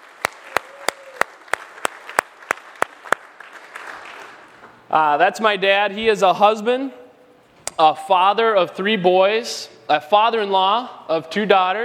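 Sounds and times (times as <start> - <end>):
audience applause: 0.0 - 4.6
speech: 4.9 - 7.0, 7.8 - 11.8.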